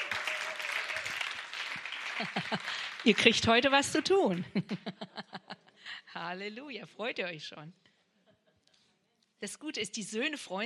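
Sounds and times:
audience applause at a church gathering: 0.0s - 4.4s
laughter: 0.0s - 5.8s
speech: 2.2s - 7.8s, 9.4s - 10.6s.

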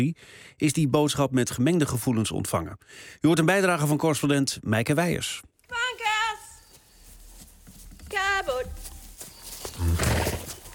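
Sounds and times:
speech: 0.0s - 6.1s
woman calling horses: 5.7s - 7.2s, 7.8s - 10.7s.

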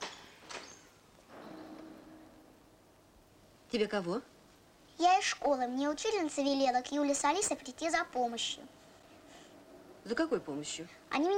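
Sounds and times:
door being opened: 0.0s - 2.7s
speech: 3.7s - 4.3s, 5.0s - 8.8s, 10.1s - 11.3s.

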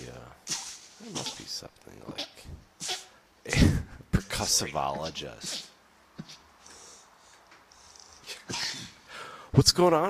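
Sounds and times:
person coughing: 1.0s - 1.5s, 2.1s - 6.4s, 8.3s - 9.0s
speech: 1.2s - 2.3s, 4.4s - 5.7s, 9.6s - 10.0s.

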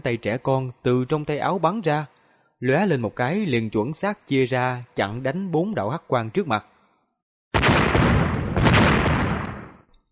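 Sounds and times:
speech: 0.0s - 6.7s
thunder-like explosive boom effect: 7.6s - 9.8s.

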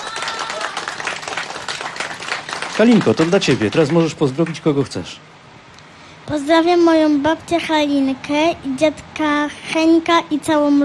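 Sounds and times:
audience applause for an eight-year-old girl at a radio event: 0.0s - 4.7s
speech: 2.8s - 5.3s, 6.3s - 10.8s.

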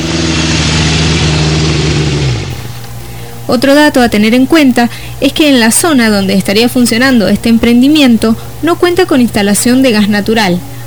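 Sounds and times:
large heavy-transport truck engine idling: 0.0s - 2.6s
speech: 3.5s - 10.7s.

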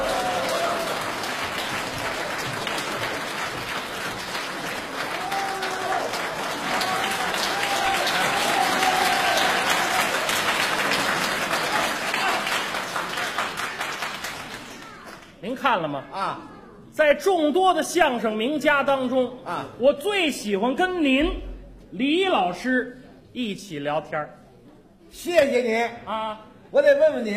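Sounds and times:
audience applause: 0.0s - 15.4s
speech: 15.7s - 24.4s, 25.1s - 27.3s.

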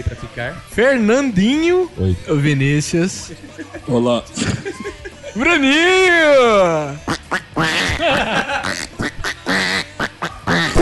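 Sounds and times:
speech: 0.0s - 8.9s
laughter: 3.3s - 5.7s, 7.6s - 9.7s
person imitating a duck with raspy nasal quacks: 7.0s - 10.8s.

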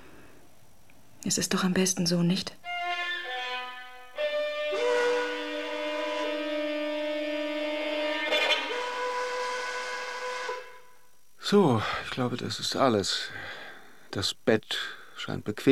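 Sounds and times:
speech: 1.2s - 2.7s, 11.5s - 13.4s, 14.1s - 15.7s
train departing: 2.8s - 10.9s.

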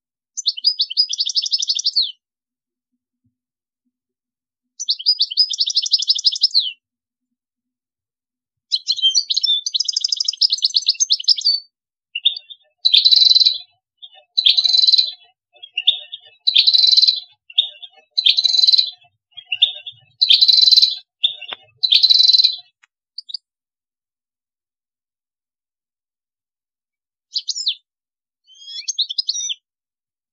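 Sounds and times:
European goldfinch song: 0.2s - 2.3s, 4.6s - 6.9s, 8.6s - 23.5s, 27.2s - 29.7s.

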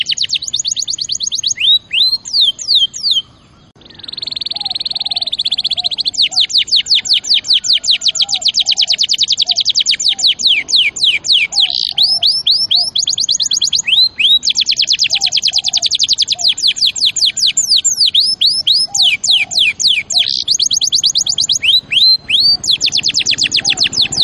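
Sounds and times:
canary singing: 0.0s - 24.2s.

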